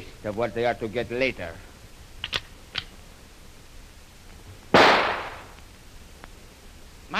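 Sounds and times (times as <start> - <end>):
speech: 0.2 - 1.7
single rifle shot in a radio drama: 4.7 - 5.6.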